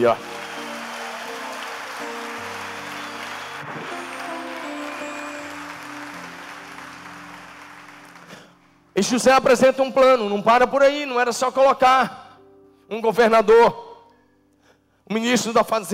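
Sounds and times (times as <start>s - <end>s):
speech: 0.0s - 0.3s, 9.0s - 12.2s, 12.9s - 13.8s, 15.1s - 15.9s
audience applause: 0.0s - 8.8s.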